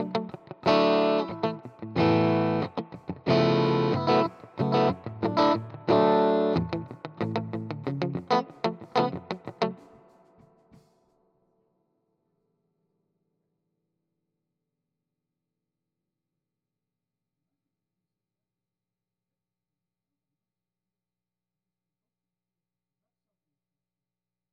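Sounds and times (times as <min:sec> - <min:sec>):
guitar: 0:00.0 - 0:11.3.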